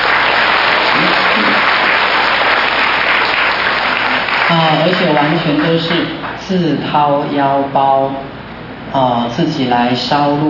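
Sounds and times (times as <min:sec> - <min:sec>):
audience applause: 0:00.0 - 0:06.4
speech: 0:04.6 - 0:10.4.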